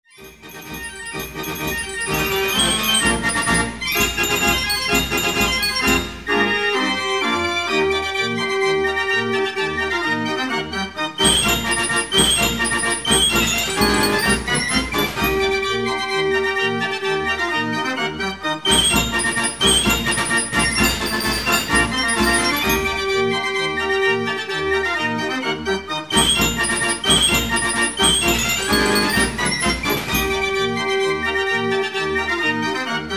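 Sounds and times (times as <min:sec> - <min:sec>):
Gavioli fairground organ: 0:00.2 - 0:33.1.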